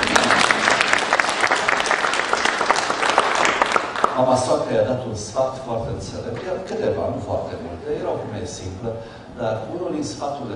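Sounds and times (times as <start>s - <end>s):
crowd applause: 0.0s - 4.2s
speech: 4.2s - 10.5s.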